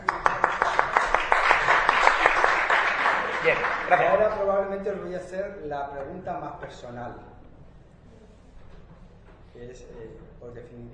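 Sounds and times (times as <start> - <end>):
audience applause: 0.0 - 4.5
speech: 3.4 - 7.4, 9.6 - 10.9.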